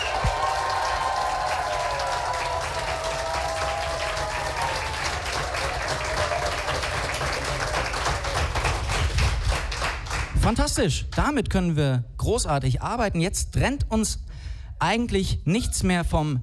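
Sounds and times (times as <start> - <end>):
audience clapping at a live text competition: 0.0 - 11.3
speech: 10.5 - 14.2, 14.8 - 16.4.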